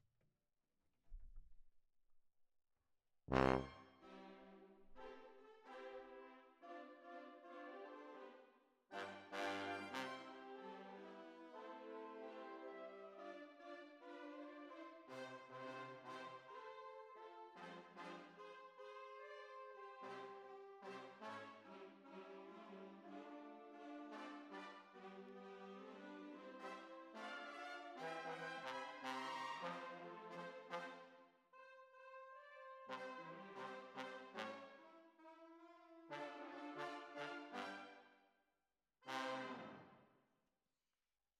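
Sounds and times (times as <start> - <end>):
tuba: 3.3 - 38.1, 39.0 - 40.0.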